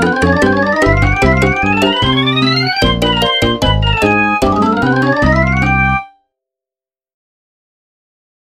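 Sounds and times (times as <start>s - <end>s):
game win jingle: 0.0s - 6.1s.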